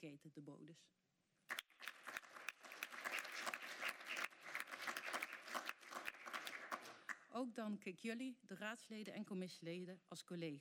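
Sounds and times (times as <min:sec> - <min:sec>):
speech: 0:00.0 - 0:01.0, 0:07.3 - 0:10.5
applause for council staff: 0:01.5 - 0:07.3.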